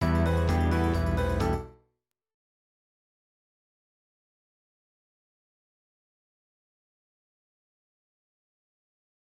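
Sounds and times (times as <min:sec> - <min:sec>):
1980s style music: 0:00.0 - 0:01.7.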